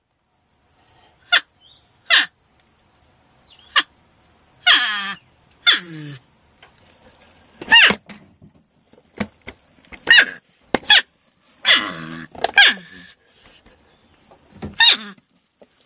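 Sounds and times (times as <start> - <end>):
porcupine squeals and whines: 4.6 - 6.2, 7.6 - 8.0, 10.0 - 13.5, 14.7 - 15.2.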